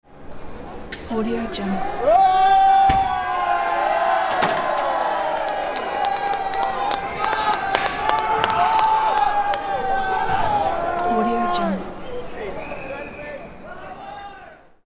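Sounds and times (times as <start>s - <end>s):
angry mob of riot protestors: 1.8s - 12.8s.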